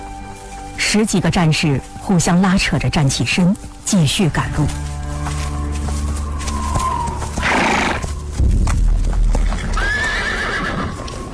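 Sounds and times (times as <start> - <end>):
war horse hooves clip-clopping: 0.0 - 11.3
speech: 0.9 - 4.9
rumbling background: 1.2 - 11.3
restless war horse whinnying on grassland: 6.6 - 8.1, 9.5 - 11.3.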